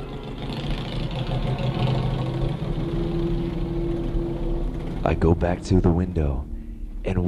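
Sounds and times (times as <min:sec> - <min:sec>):
Harley motorcycle engine idling: 0:00.0 - 0:05.6
speech: 0:05.0 - 0:07.2.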